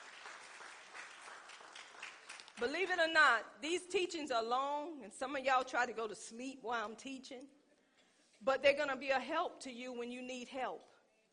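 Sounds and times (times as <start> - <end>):
audience clapping hands in praise: 0.0 - 3.0
speech: 2.6 - 7.6, 8.4 - 10.9.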